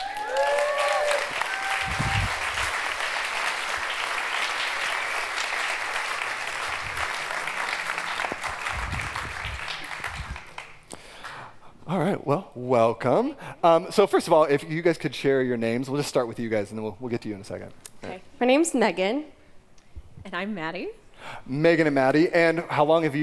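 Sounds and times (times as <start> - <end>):
audience applause welcoming life group leaders onto a stage: 0.0 - 10.8
speech: 12.6 - 19.4, 20.2 - 23.2.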